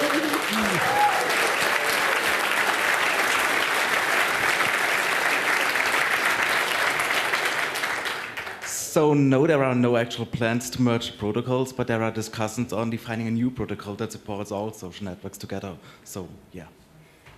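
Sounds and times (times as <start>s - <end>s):
audience applause: 0.0s - 8.8s
speech: 9.0s - 16.8s.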